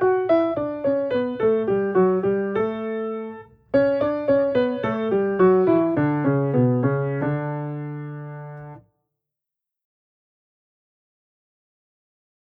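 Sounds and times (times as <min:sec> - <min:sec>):
piano exercise in parallel octaves: 0:00.0 - 0:08.8.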